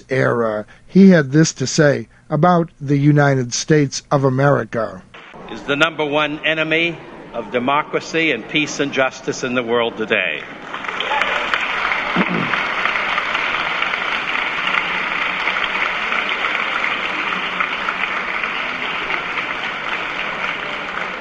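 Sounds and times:
speech: 0:00.0 - 0:10.9
audience applause: 0:10.6 - 0:21.1.

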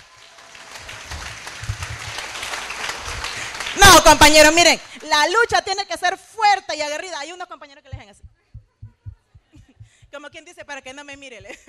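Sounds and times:
audience applause: 0:00.0 - 0:04.6
speech: 0:04.0 - 0:08.3, 0:10.1 - 0:11.6.

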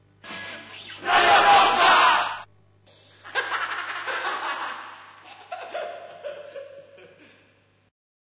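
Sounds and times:
person screaming: 0:01.0 - 0:02.4
laughter: 0:03.2 - 0:07.5.

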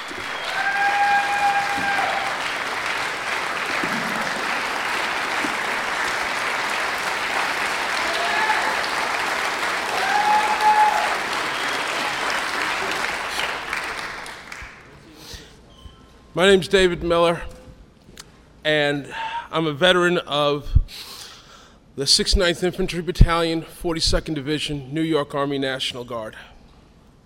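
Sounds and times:
audience applause: 0:00.0 - 0:14.9
speech: 0:16.4 - 0:17.5, 0:18.7 - 0:20.8, 0:22.0 - 0:26.5.

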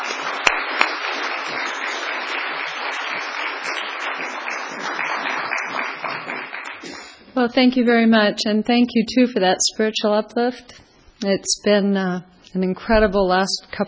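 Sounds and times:
audience clapping to welcome a guest speaker: 0:00.0 - 0:07.2
speech: 0:07.4 - 0:13.8.

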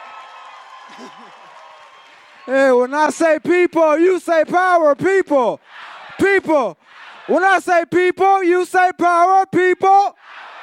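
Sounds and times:
round of applause: 0:00.0 - 0:03.3
speech: 0:00.9 - 0:01.7, 0:02.4 - 0:10.2.

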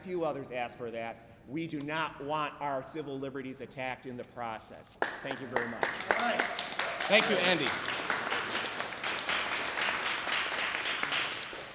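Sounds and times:
speech: 0:00.0 - 0:08.2
audience applause: 0:05.6 - 0:11.7.

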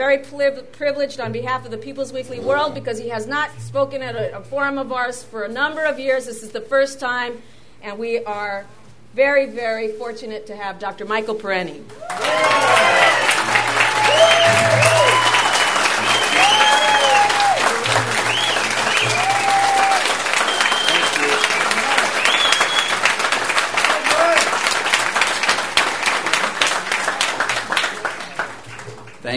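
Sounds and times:
speech: 0:00.0 - 0:13.3
audience applause: 0:11.9 - 0:29.3.

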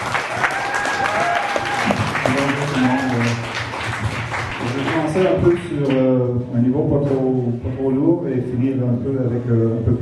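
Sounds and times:
audience applause: 0:00.0 - 0:05.4
speech: 0:05.4 - 0:09.9.

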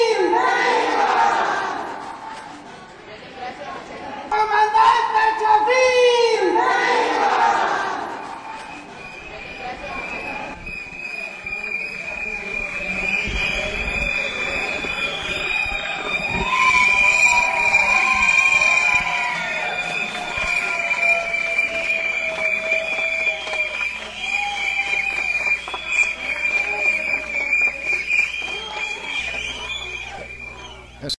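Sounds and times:
large crowd cheering: 0:00.0 - 0:02.8, 0:04.5 - 0:31.1
shrill whistle-like tone: 0:08.3 - 0:31.1.

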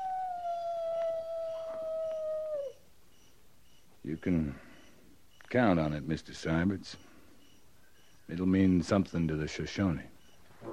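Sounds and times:
coyote howling: 0:00.0 - 0:02.9
speech: 0:04.1 - 0:04.7, 0:05.5 - 0:07.1, 0:08.3 - 0:10.2.

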